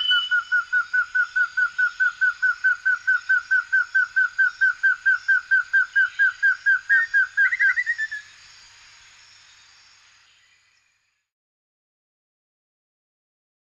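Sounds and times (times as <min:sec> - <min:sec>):
cuckoo in forest: 0:00.0 - 0:08.3.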